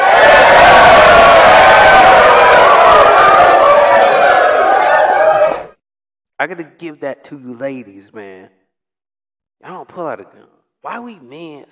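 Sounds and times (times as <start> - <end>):
audience applause: 0.0 - 5.8
speech: 6.4 - 8.6, 9.6 - 11.7.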